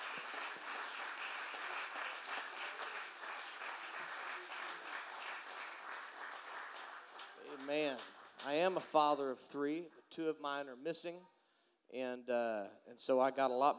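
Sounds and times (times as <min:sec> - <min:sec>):
audience clapping: 0:00.0 - 0:09.1
speech: 0:08.7 - 0:11.3, 0:11.9 - 0:13.7.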